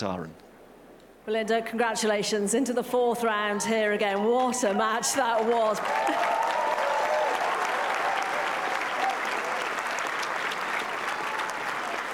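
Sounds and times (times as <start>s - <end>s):
speech: 0.0s - 0.5s, 1.2s - 6.5s
tennis crowd applauding after a match: 4.1s - 12.1s.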